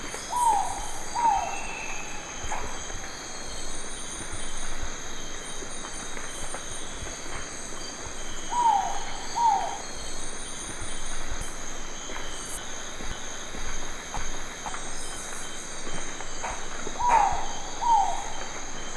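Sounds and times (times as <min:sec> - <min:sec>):
Ninox theomacha calling: 0:00.3 - 0:02.7, 0:08.5 - 0:09.9, 0:17.0 - 0:18.5.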